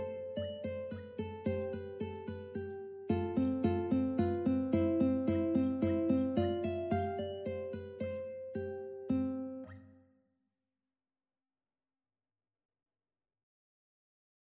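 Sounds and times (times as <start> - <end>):
ukulele playing a minuet: 0.0 - 9.6.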